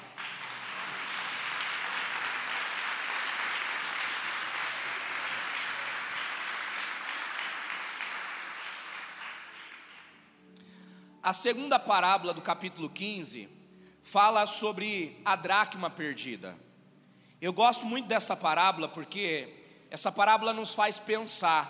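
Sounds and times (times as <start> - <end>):
crowd applause: 0.0 - 10.2
speech: 11.2 - 16.6, 17.4 - 21.6.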